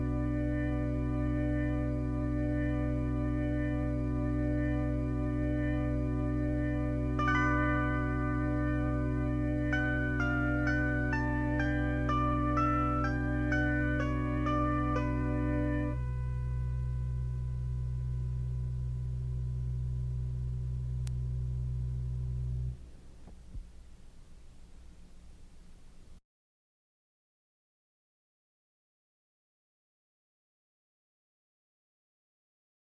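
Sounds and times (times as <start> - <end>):
instrumental music: 0.0 - 23.0.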